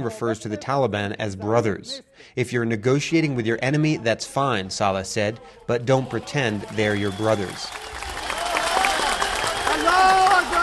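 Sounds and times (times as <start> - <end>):
speech: 0.0 - 8.2
rally crowd applauding: 5.3 - 10.6.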